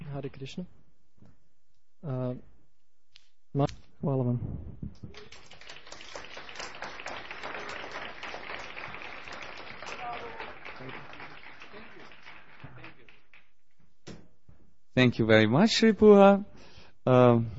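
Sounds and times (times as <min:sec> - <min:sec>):
speech: 0:00.1 - 0:00.8, 0:02.0 - 0:02.5, 0:03.6 - 0:05.4, 0:15.0 - 0:17.5
audience applause for a speaker after a talk: 0:05.2 - 0:13.6.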